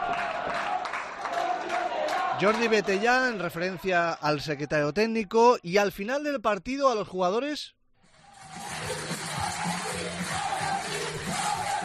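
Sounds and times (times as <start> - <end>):
large stadium crowd roaring: 0.0 - 3.5, 8.1 - 11.8
stadium crowd applauding: 0.0 - 4.4, 8.0 - 11.8
speech: 2.4 - 7.8.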